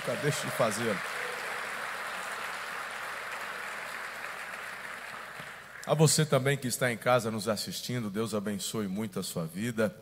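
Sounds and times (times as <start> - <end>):
speech: 0.0 - 1.3, 5.9 - 10.0
audience applauding: 0.0 - 5.9.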